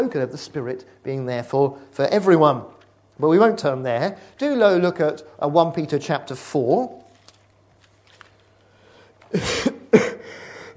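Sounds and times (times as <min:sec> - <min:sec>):
speech: 0:00.0 - 0:07.0, 0:09.3 - 0:09.7
harsh coughs into the microphone: 0:09.3 - 0:10.3.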